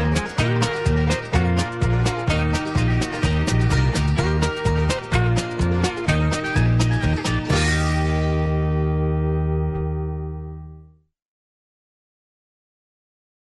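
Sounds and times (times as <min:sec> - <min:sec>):
square dance music: 0:00.0 - 0:10.7.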